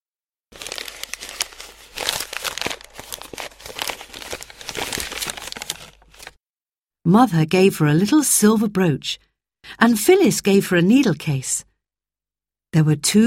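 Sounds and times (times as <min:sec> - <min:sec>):
presents being unwrapped, paper crinkling: 0:00.5 - 0:06.4
speech: 0:07.1 - 0:11.7, 0:12.7 - 0:13.2.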